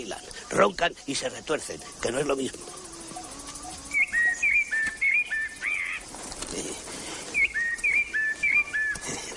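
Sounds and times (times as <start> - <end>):
faint hiss: 0.0 - 9.3
small bird singing high whistled phrases: 0.0 - 9.3
speech: 0.1 - 2.8
person murmuring: 6.4 - 7.0, 9.0 - 9.3.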